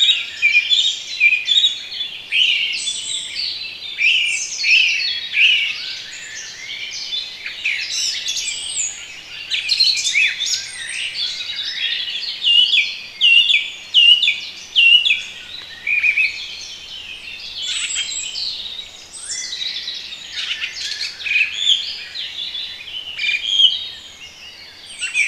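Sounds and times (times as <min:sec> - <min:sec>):
bird chorus: 0:00.0 - 0:25.2.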